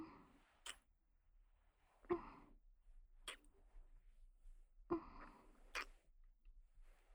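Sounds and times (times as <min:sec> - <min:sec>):
gentle kissing: 0:00.6 - 0:00.8, 0:03.3 - 0:03.5, 0:05.7 - 0:06.0.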